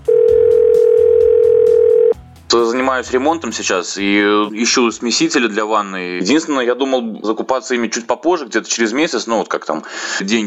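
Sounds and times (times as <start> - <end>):
telephone dial tone: 0.1 - 2.2
speech: 2.5 - 10.4.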